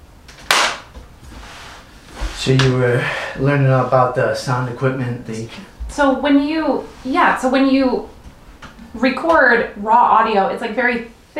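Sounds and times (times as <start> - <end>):
sharp hand clap as a sync marker: 0.3 - 0.9
speech: 2.4 - 8.2, 8.9 - 11.3.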